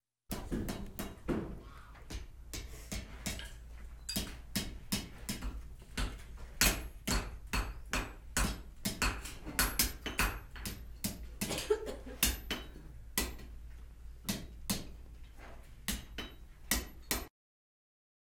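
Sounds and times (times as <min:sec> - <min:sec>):
blacksmith shop: 0:00.3 - 0:17.3.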